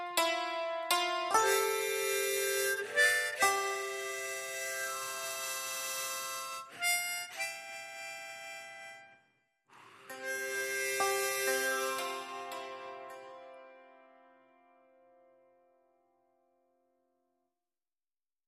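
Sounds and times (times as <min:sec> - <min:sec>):
harmonica: 0:00.0 - 0:13.9.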